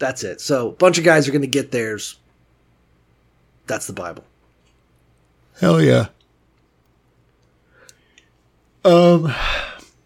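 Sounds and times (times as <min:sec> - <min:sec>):
speech: 0:00.0 - 0:02.2, 0:03.7 - 0:04.3, 0:05.6 - 0:06.2, 0:08.8 - 0:09.7
man yawning into the microphone: 0:09.2 - 0:09.8.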